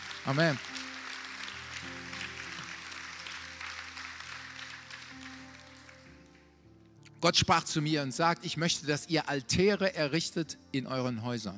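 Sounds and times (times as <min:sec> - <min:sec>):
audience applause: 0:00.0 - 0:06.4
speech: 0:00.2 - 0:00.8, 0:07.2 - 0:11.5.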